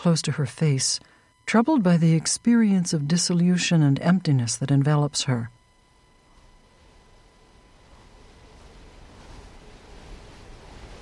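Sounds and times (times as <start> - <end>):
speech: 0.0 - 5.6
northeasterly wind blowing: 6.2 - 10.9.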